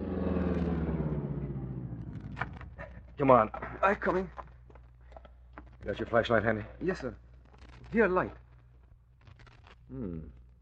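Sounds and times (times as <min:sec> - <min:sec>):
car engine rumbling: 0:00.0 - 0:05.0
speech: 0:03.2 - 0:04.4, 0:05.8 - 0:07.2, 0:07.9 - 0:08.4, 0:09.9 - 0:10.4.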